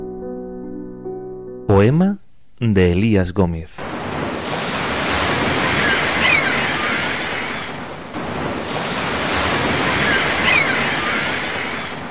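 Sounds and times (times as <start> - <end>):
speech: 1.8 - 3.9
ocean waves breaking on shore: 3.9 - 12.0.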